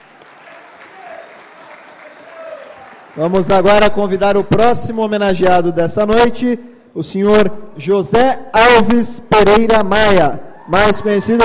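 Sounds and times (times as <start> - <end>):
audience applause: 0.0 - 3.5
speech: 3.2 - 11.4.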